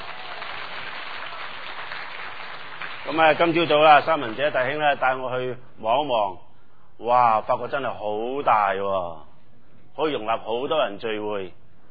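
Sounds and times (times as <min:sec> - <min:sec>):
audience applause: 0:00.0 - 0:04.8
speech: 0:03.1 - 0:06.4, 0:07.0 - 0:09.2, 0:10.0 - 0:11.6.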